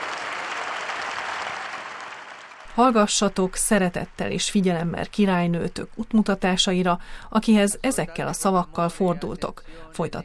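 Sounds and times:
crowd applauding in St. Peter's Square: 0:00.0 - 0:04.2
speech: 0:02.8 - 0:10.2.

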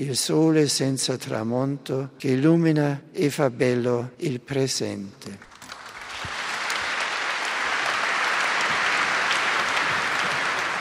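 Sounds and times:
speech: 0:00.0 - 0:05.5
long applause: 0:05.4 - 0:10.8.

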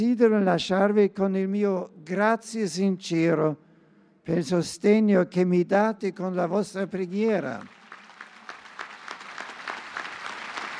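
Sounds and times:
speech: 0:00.0 - 0:03.6, 0:04.2 - 0:07.8
applause: 0:07.2 - 0:10.7.

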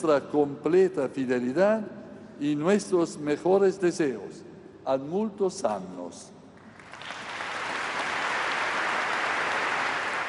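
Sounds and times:
speech: 0:00.0 - 0:06.4
thunderous applause from a large crowd: 0:06.6 - 0:10.2.

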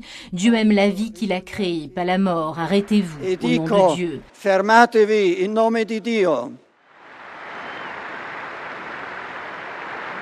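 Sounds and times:
speech: 0:00.0 - 0:06.6
crowd applause in Saint Peter's Square: 0:07.1 - 0:10.1.

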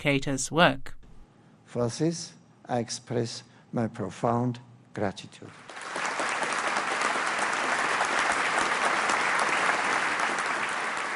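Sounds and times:
speech: 0:00.0 - 0:01.0, 0:01.7 - 0:05.9
audience applause after speech line: 0:05.5 - 0:11.1.

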